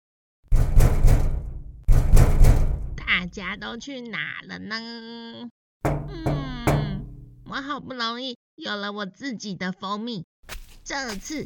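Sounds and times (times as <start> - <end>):
knocking on a door with echo: 0.5 - 3.0, 5.8 - 7.4
speech: 3.1 - 6.4, 7.5 - 10.3, 10.9 - 11.4.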